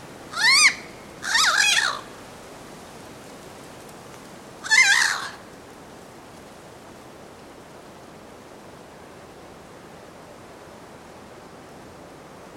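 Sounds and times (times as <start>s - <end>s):
harsh nasal bird caws: 0.3s - 2.0s, 4.6s - 5.4s.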